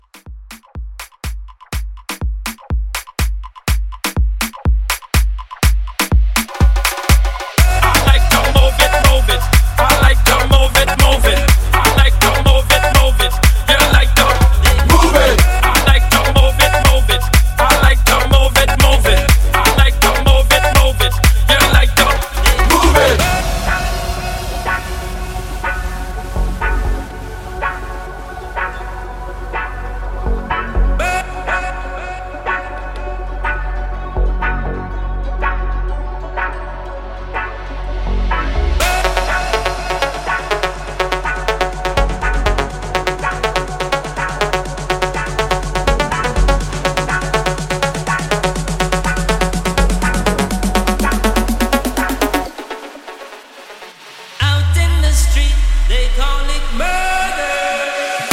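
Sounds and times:
club mixshow music: 0.0 - 58.3.

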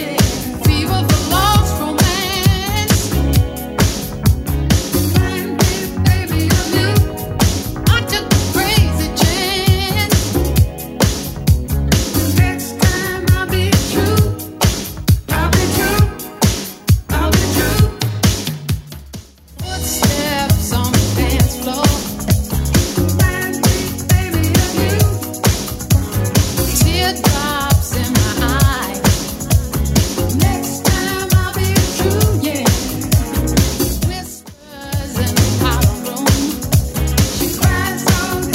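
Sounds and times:
80s style electronic music beat: 0.0 - 38.5.

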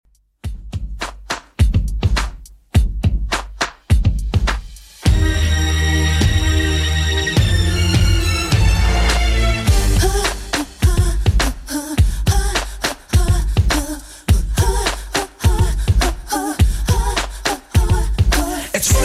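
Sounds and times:
Redrum drum loop: 0.2 - 6.8, 7.4 - 19.0.

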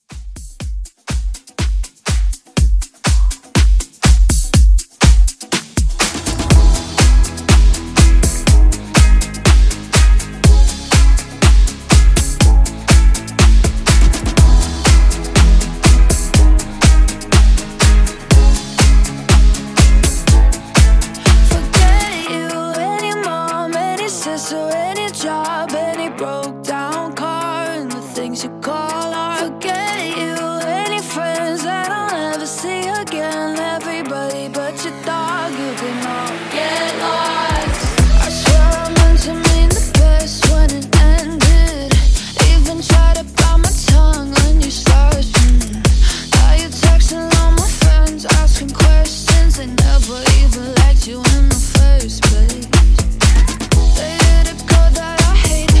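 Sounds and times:
house drum beat: 0.0 - 55.7.

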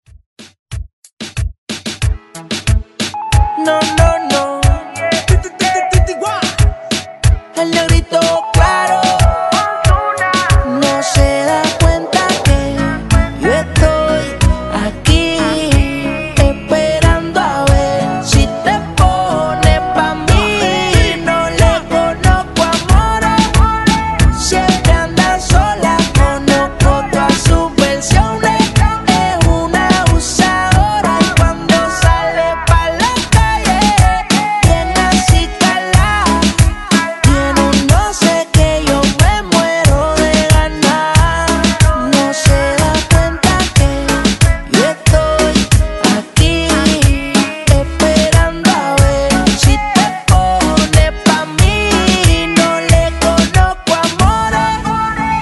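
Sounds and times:
reggaeton music: 1.3 - 55.3.

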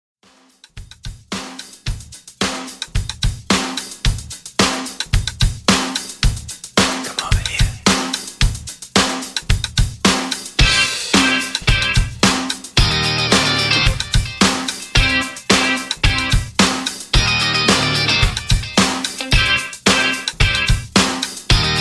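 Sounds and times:
80s funk rock drum groove at 110 BPM: 0.2 - 21.7.

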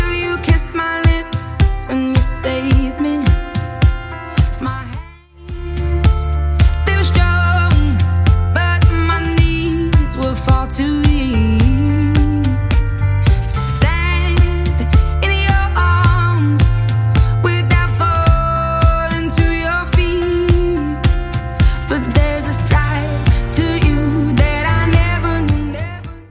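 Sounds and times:
drum loop at 108 bpm: 0.0 - 26.2.

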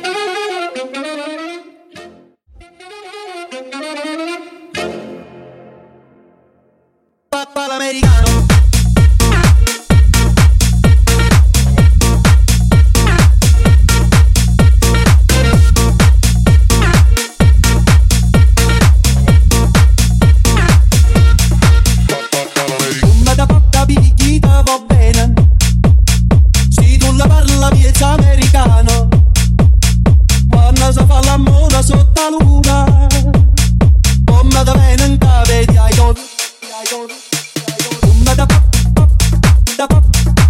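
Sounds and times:
tech house intro: 8.0 - 40.4.

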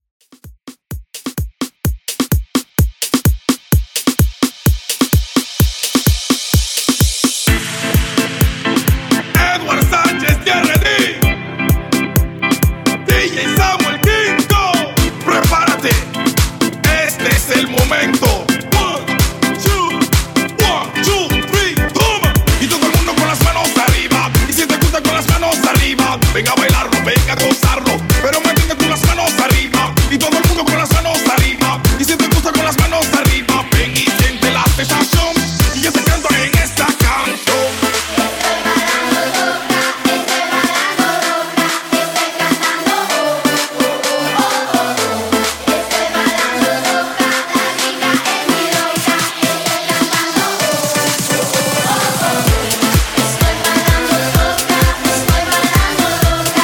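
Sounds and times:
moombahton dance music at 128 bpm: 0.2 - 56.6.

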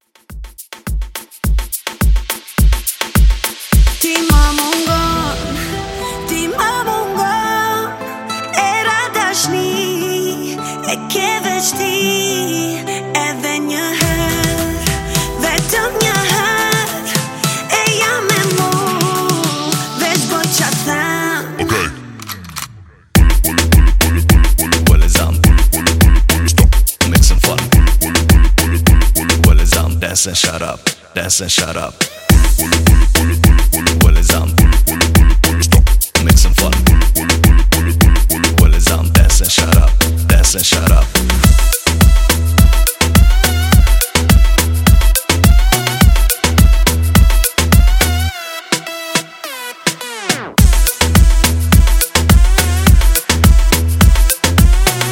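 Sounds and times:
dancehall music mixshow: 0.0 - 55.1.

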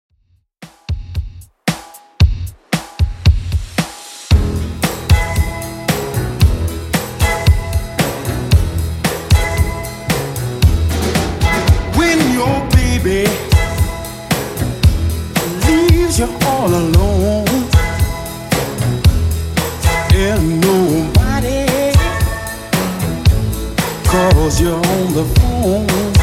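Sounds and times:
60s-style Redrum drum machine beat at 114 BPM: 0.6 - 26.2.

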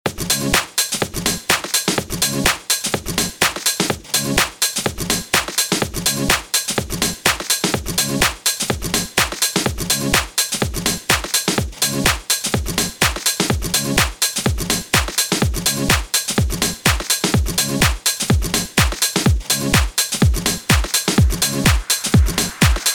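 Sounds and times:
house music: 0.1 - 22.9.

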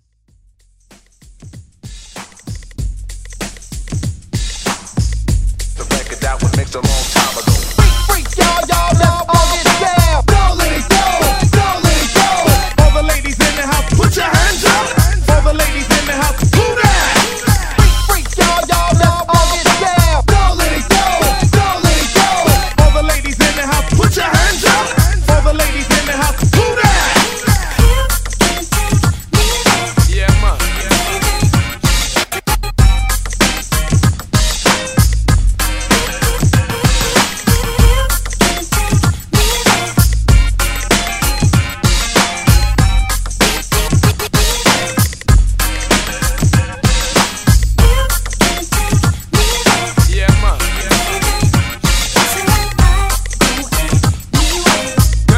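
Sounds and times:
throwback hype beat: 0.8 - 55.3.

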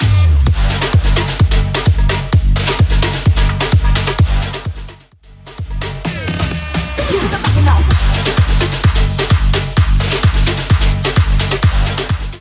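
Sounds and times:
Latin tribal music: 0.0 - 12.3.

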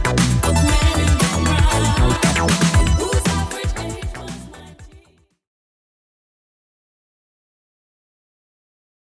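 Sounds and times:
80s drum machine beat: 0.0 - 5.1.

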